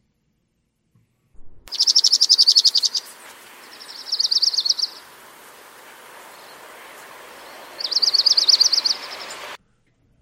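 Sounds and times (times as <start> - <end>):
faint hiss: 0.0 - 10.2
dark-eyed junco singing trills: 1.7 - 9.6.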